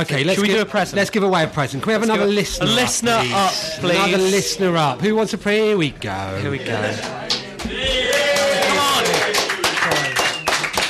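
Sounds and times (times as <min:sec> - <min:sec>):
speech: 0:00.0 - 0:08.0
audience applause: 0:07.0 - 0:10.8.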